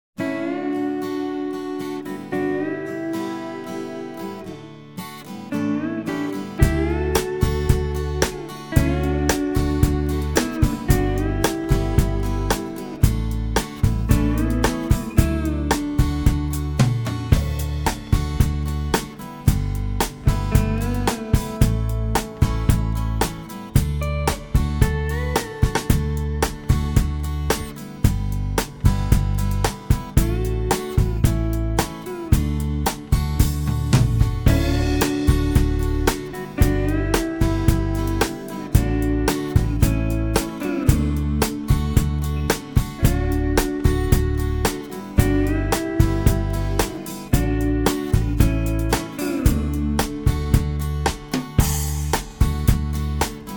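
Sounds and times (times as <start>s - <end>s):
country ballad for singing: 0.2s - 53.5s.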